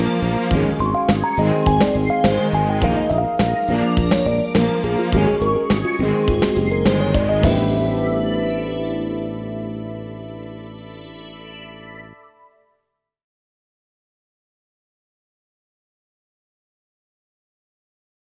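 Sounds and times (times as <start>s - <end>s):
rock funk music: 0.0s - 12.1s.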